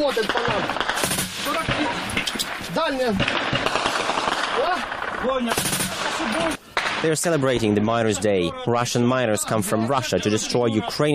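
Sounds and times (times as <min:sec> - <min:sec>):
speech: 0:00.0 - 0:01.6, 0:02.8 - 0:03.8, 0:04.6 - 0:11.1
voices shouting: 0:00.0 - 0:06.7, 0:07.6 - 0:11.1
automatic gunfire from Donbas Battalion soldiers shooting at Russian-backed separatists: 0:00.0 - 0:07.1.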